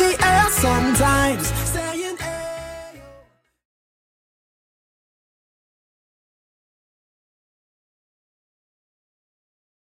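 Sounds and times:
Redrum drum machine beat at 120 BPM: 0.0s - 2.5s.

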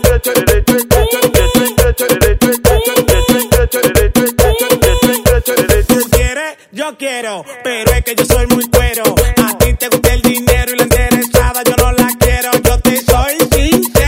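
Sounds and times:
drum: 0.0s - 6.3s, 7.9s - 14.0s.

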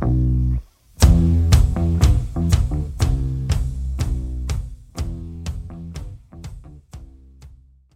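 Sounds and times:
DJ intro outro music at 122 BPM: 1.0s - 7.4s.

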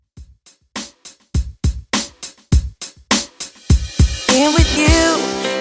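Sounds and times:
90s drum beat: 0.0s - 5.5s.

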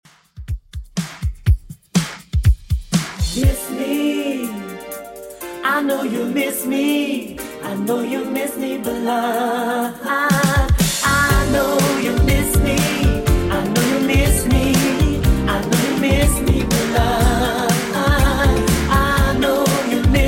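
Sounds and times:
eighties beat: 0.0s - 9.4s, 10.3s - 20.2s.

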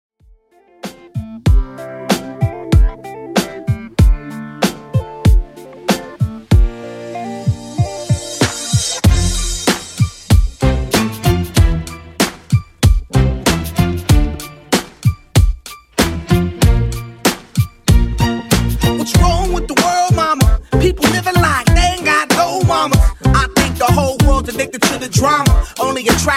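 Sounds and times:
R&B beat: 0.8s - 26.3s.

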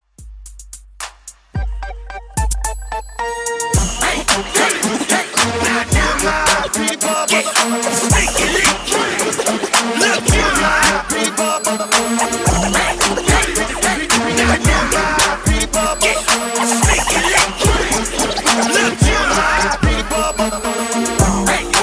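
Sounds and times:
mixshow outro music at 110 BPM: 1.6s - 21.8s
DJ scratching in mixshow outro: 3.5s - 21.8s.

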